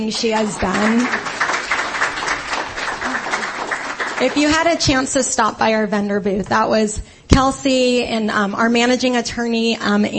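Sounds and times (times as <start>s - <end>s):
speech: 0.0s - 1.4s, 4.2s - 10.1s
audience applause at a gathering: 0.2s - 4.8s.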